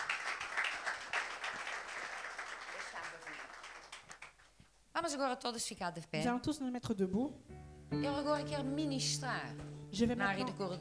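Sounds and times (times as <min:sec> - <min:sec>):
church congregation clapping: 0:00.0 - 0:04.7
speech: 0:05.0 - 0:10.7.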